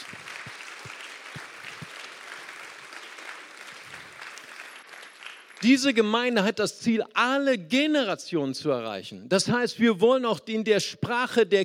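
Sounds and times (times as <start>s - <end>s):
audience applause: 0.0s - 5.7s
speech: 5.6s - 11.6s.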